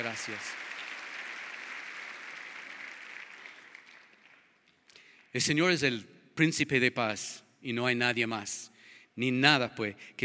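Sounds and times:
audience applause: 0:00.0 - 0:04.6
speech: 0:00.1 - 0:00.7, 0:05.3 - 0:10.2.

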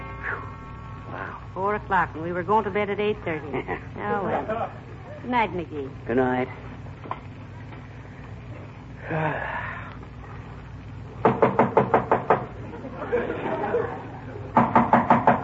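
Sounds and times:
low steady hum: 0:00.0 - 0:15.4
speech: 0:01.1 - 0:06.7, 0:09.1 - 0:09.6
laughter: 0:03.3 - 0:05.2, 0:12.6 - 0:14.6
knocking on a door: 0:11.2 - 0:12.5, 0:14.6 - 0:15.4.

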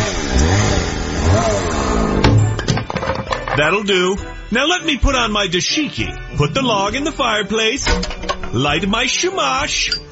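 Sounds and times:
chainsaw engine revving: 0:00.0 - 0:02.3
speech: 0:03.6 - 0:10.0.

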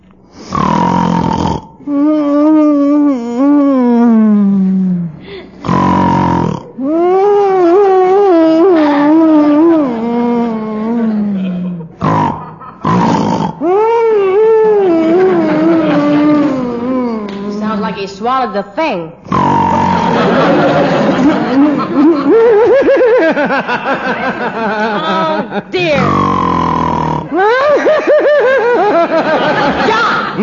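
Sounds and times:
man snoring and snorting in sleep: 0:00.3 - 0:17.7, 0:19.2 - 0:22.8, 0:25.9 - 0:27.6
man grunting and groaning in sleep: 0:01.9 - 0:17.7, 0:25.9 - 0:27.6
laughter: 0:10.9 - 0:12.9, 0:13.7 - 0:17.6, 0:19.9 - 0:26.0, 0:27.3 - 0:30.4
speech: 0:18.4 - 0:19.4, 0:23.3 - 0:26.3, 0:27.3 - 0:30.4.

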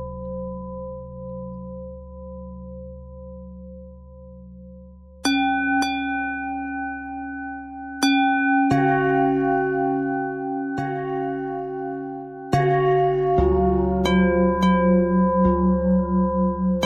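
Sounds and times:
pentatonic bell melody: 0:05.3 - 0:16.8.

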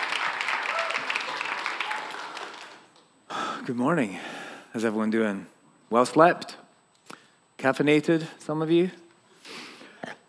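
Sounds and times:
audience applause: 0:00.0 - 0:03.0
speech: 0:03.7 - 0:06.6, 0:07.6 - 0:09.0.

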